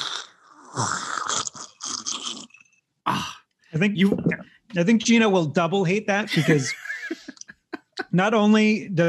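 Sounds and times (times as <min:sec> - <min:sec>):
person sipping whiskey: 0:00.0 - 0:03.2
speech: 0:03.8 - 0:06.8, 0:08.1 - 0:09.0
laughter: 0:06.2 - 0:08.8.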